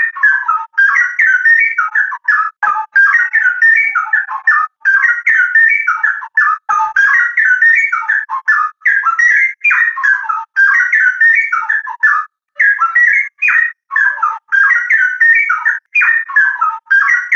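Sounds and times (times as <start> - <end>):
straw-headed bulbul singing vigorously: 0.0 - 17.3.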